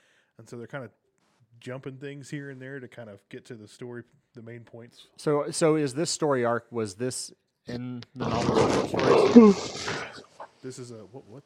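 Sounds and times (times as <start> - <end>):
speech: 0.4 - 11.4
person yawning: 8.4 - 10.4.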